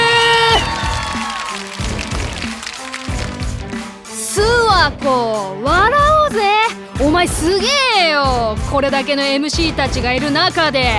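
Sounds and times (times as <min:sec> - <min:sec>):
audience applause: 0:00.0 - 0:03.9
music with held tonal chord and rhythmic low beats: 0:00.5 - 0:09.0, 0:09.6 - 0:10.9
speech: 0:04.9 - 0:10.9.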